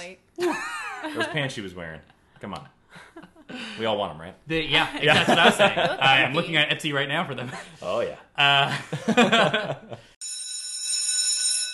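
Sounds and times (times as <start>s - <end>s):
speech: 0.0s - 10.3s
laughter: 0.4s - 1.5s, 4.8s - 6.6s, 7.3s - 10.1s
bell ringing: 10.2s - 11.7s.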